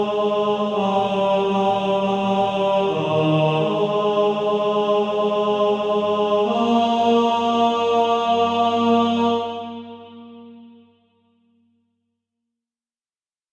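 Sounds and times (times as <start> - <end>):
male choir: 0.0 - 10.8.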